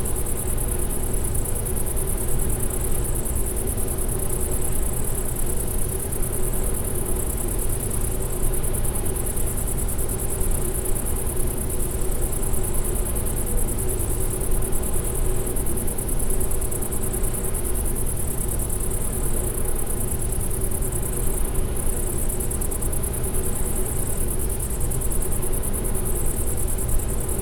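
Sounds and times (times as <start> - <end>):
bush-cricket song: 0.0 - 27.4.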